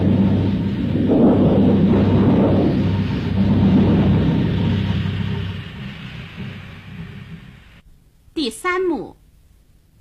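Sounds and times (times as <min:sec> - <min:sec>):
thunder rumbling in a storm: 0:00.0 - 0:07.8.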